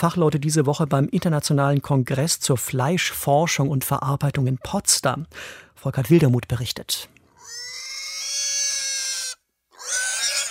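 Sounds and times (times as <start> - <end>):
speech: 0.0 - 7.2
piglet screaming: 7.4 - 10.4.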